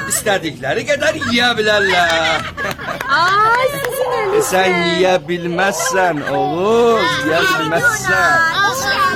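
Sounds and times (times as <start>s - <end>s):
laughter: 0.0s - 9.0s
speech: 0.2s - 9.0s
baby crying after waking: 3.2s - 7.8s.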